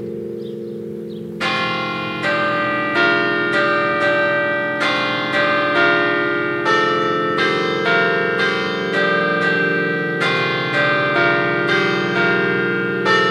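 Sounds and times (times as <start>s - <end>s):
carillon bells in Siviriez: 0.0s - 13.3s.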